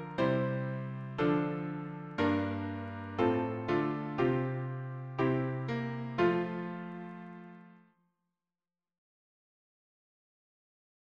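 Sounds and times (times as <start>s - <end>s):
piano harmony: 0.0s - 7.8s.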